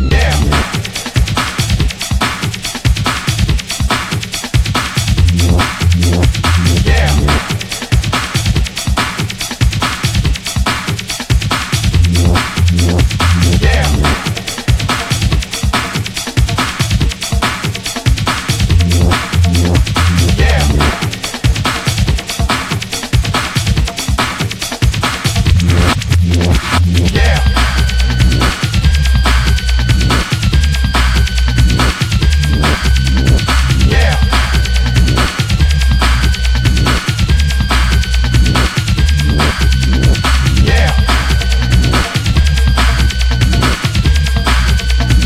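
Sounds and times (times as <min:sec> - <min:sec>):
electric bongos: 0:00.1 - 0:45.2.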